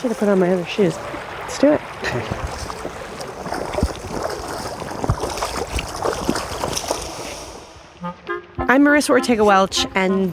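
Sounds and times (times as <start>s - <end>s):
speech: 0.0s - 2.8s, 8.7s - 10.3s
wading across a wide shallow river: 0.0s - 8.0s.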